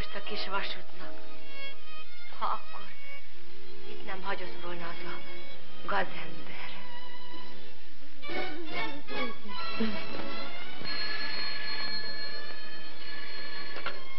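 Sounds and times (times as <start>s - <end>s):
faint hiss: 0.0s - 14.1s
speech: 0.1s - 1.4s, 2.4s - 3.0s, 4.1s - 6.7s, 8.3s - 10.6s
telephone ringing: 10.3s - 14.1s.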